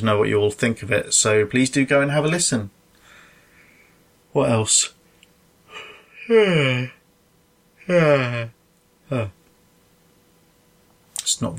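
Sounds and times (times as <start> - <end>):
speech: 0.0 - 2.8, 4.4 - 5.0, 6.3 - 7.0, 7.9 - 9.4, 11.3 - 11.5
person yawning: 5.7 - 7.0, 7.8 - 9.4.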